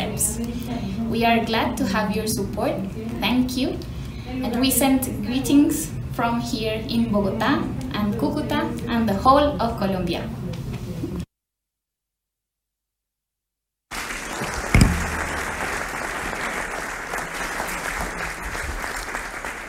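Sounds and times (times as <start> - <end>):
speech: 0.4 - 10.4
crowd applauding: 13.9 - 19.6
sharp knock: 14.7 - 15.7.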